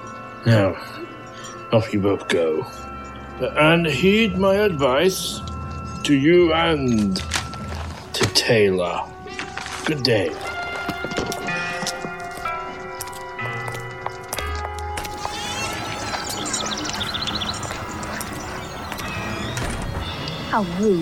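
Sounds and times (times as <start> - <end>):
speech: 0.4 - 7.4, 8.4 - 9.1, 9.9 - 10.5, 20.6 - 21.0
horse hooves clip-clopping: 9.3 - 21.0.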